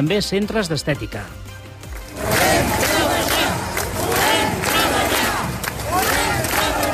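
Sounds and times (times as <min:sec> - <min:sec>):
speech: 0:00.0 - 0:01.4
large protest crowd chanting in unison: 0:02.1 - 0:06.9.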